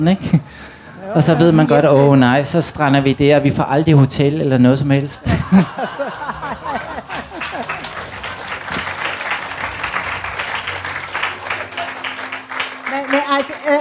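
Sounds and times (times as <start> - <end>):
speech: 0.0 - 6.2
crowd murmur: 0.9 - 2.2, 5.2 - 13.7
laughter: 5.2 - 8.0
audience clapping: 5.6 - 13.7.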